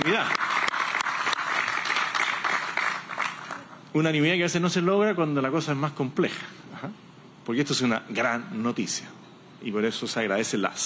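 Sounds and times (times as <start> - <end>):
audience applause for parliamentarians: 0.0 - 3.7
speech: 0.1 - 0.4, 3.9 - 10.8.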